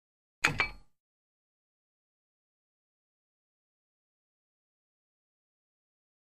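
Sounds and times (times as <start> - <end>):
gym weight equipment: 0.4 - 0.9.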